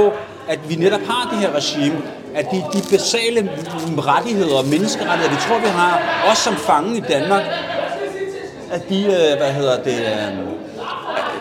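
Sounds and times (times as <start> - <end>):
speech: 0.0 - 7.8, 8.7 - 10.9
murmur of background voices chattering: 0.0 - 11.4
laughter from background conversation: 7.0 - 8.4, 10.7 - 11.4.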